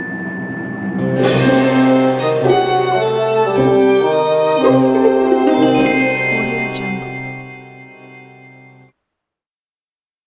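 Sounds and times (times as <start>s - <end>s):
sneaky orchestral music: 1.0s - 8.9s.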